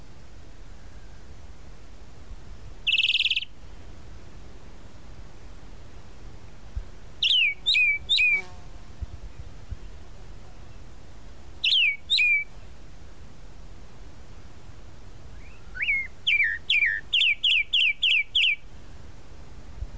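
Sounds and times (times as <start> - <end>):
tropical mockingbird song: 2.8 - 3.6, 7.2 - 8.5, 11.6 - 12.8, 15.3 - 18.7.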